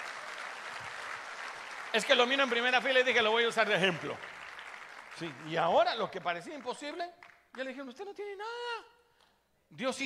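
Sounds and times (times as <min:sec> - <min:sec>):
audience applause: 0:00.0 - 0:07.7
speech: 0:02.0 - 0:04.3, 0:05.2 - 0:08.9, 0:09.7 - 0:10.0.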